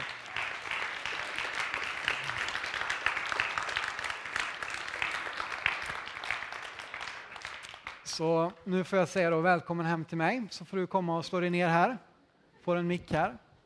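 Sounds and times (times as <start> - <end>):
crowd applauding: 0.0 - 8.2
speech: 8.2 - 12.1, 12.7 - 13.6.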